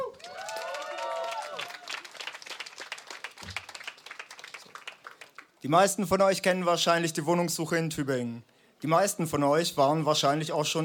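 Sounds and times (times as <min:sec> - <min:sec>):
audience applause: 0:00.0 - 0:05.5
speech: 0:05.6 - 0:10.8.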